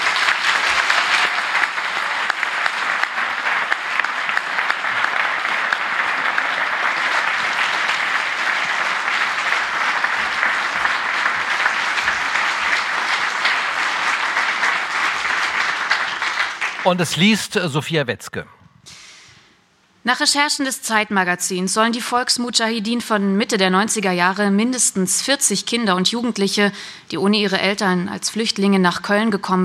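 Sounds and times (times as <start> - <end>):
audience applause: 0.0 - 18.1
speech: 16.9 - 18.6, 20.0 - 29.6.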